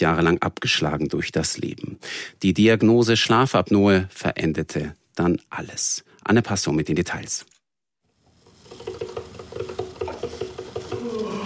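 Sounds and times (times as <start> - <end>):
speech: 0.0 - 7.5
coffee machine pump chugging: 8.6 - 11.4.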